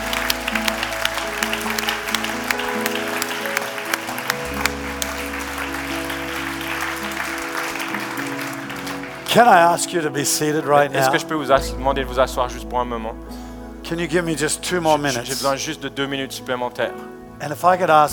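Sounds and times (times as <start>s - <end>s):
audience applause: 0.0s - 11.2s
speech: 9.4s - 18.1s.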